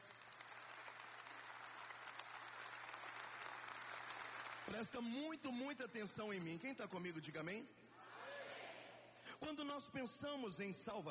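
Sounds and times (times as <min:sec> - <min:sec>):
audience applauding: 0:00.0 - 0:05.2
speech: 0:04.7 - 0:07.8, 0:09.5 - 0:11.0.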